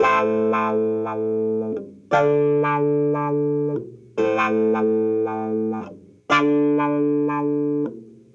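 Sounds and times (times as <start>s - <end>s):
70s analog funk disco clavinet: 0.0s - 8.3s.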